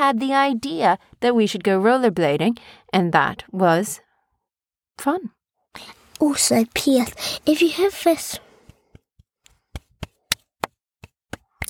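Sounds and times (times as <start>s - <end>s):
speech: 0.0s - 4.0s, 5.0s - 8.4s
hands clapping: 8.2s - 11.6s.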